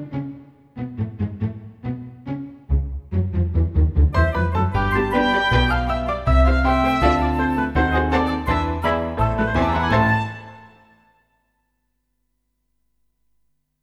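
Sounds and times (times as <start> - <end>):
orchestral transition: 0.8 - 10.4.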